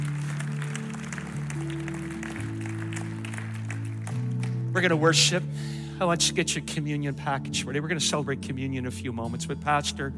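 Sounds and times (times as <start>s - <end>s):
audience clapping: 0.0s - 5.0s
speech: 4.8s - 10.1s.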